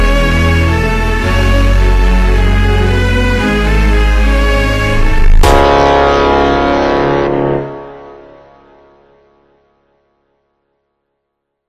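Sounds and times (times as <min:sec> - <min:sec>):
ultra slowed funk music: 0:00.0 - 0:08.5.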